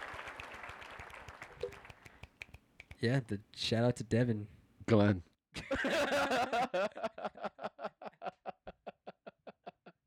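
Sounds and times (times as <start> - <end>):
polite golf clap applause: 0.0 - 3.0
speech: 3.0 - 7.5
laughter: 5.6 - 10.0.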